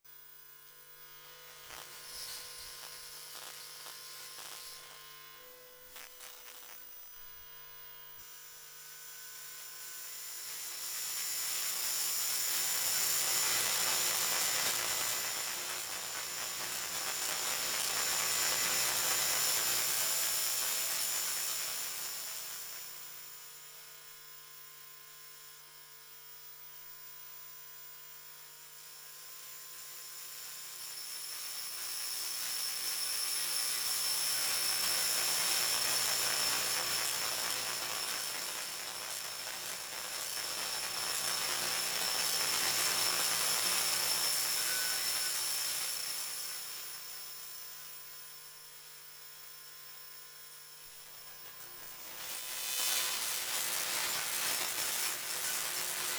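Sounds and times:
electromagnetic field buzzing: 0.3 - 22.8, 31.4 - 47.2, 50.4 - 56.1.

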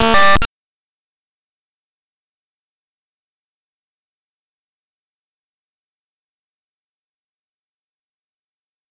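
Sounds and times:
Roland D-70 drums: 0.0 - 0.4.

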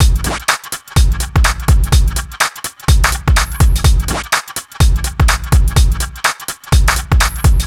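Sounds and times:
lounge house music loop: 0.0 - 7.6.

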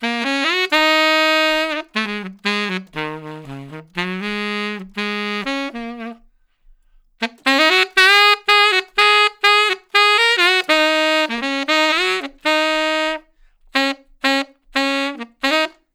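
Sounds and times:
traditional jazz tenor saxophone solo: 0.0 - 15.9.

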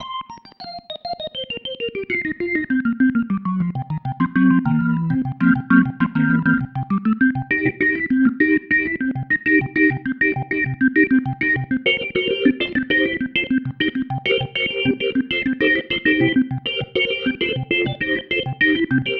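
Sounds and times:
organ pattern: 1.0 - 19.1.

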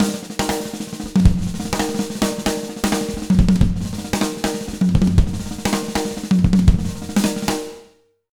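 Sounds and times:
Latin jazz drum loop beat: 0.0 - 7.8.

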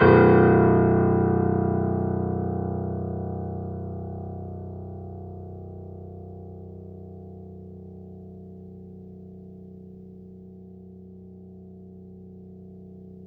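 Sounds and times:
grand piano off mic: 0.0 - 7.6.

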